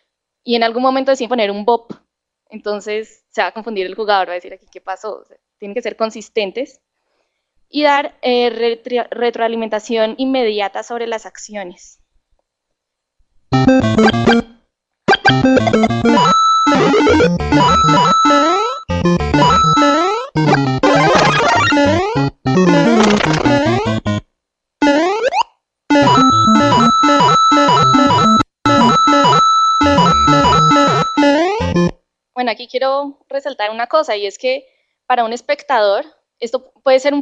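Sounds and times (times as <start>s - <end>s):
speech: 0.4s - 6.8s, 7.7s - 12.0s, 13.5s - 14.4s, 22.6s - 23.4s, 32.5s - 37.2s
video game coin sound effect: 13.6s - 24.2s, 24.9s - 31.9s.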